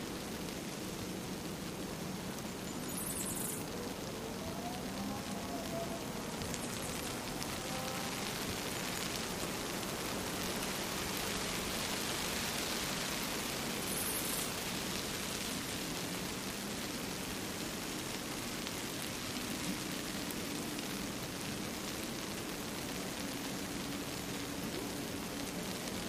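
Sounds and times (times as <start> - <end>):
light rain shower: 0.0 - 26.0.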